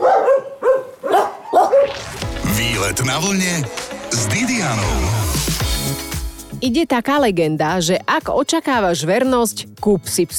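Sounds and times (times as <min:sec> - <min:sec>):
shelter dogs barking in kennels: 0:00.0 - 0:02.0
speech: 0:02.9 - 0:10.3.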